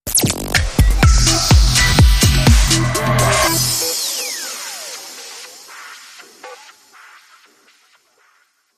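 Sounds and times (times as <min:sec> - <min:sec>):
transition effect: 0:00.2 - 0:07.4.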